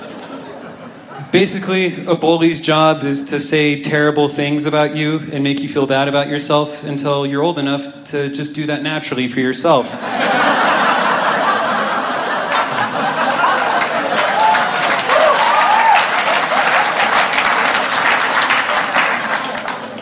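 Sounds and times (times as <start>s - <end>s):
scattered chuckles and laughter: 0.0s - 2.1s, 9.8s - 20.0s
speech: 1.2s - 10.8s
crowd applauding loudly: 11.2s - 20.0s.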